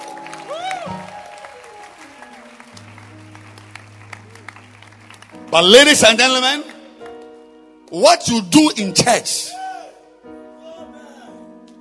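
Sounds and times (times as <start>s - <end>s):
people clapping hands: 0.0s - 7.4s
speech: 5.5s - 6.7s, 7.9s - 9.6s.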